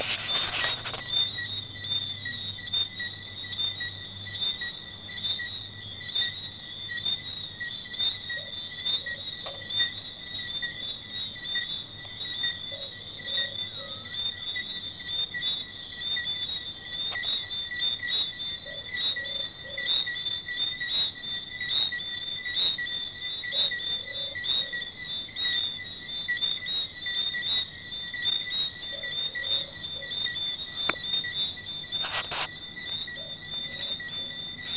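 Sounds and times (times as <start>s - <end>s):
tree frogs: 0.0s - 34.7s.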